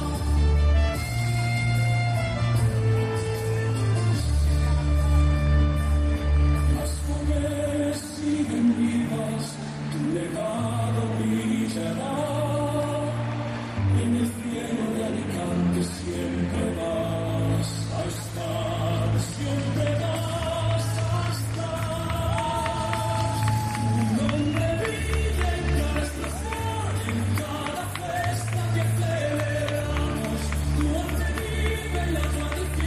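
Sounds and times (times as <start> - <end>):
song played over outdoor plaza speakers: 0.0 - 32.8.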